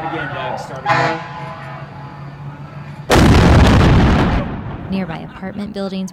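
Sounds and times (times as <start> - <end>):
speech: 0.0 - 1.8, 4.9 - 6.1
bomb blast detonated by Air Force officials: 3.1 - 5.4.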